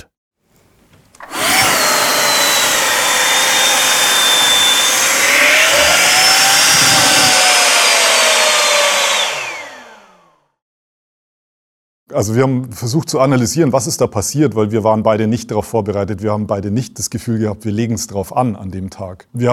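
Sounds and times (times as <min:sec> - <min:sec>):
avalanche airbag inflating with a motorized fan whine: 0:01.2 - 0:10.3
speech: 0:12.1 - 0:19.5.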